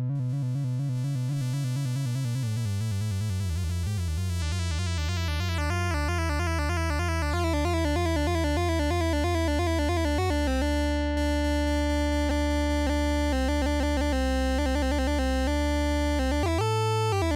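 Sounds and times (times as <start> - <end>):
MicroFreak basic virtual analog waves: 0.2 - 17.3.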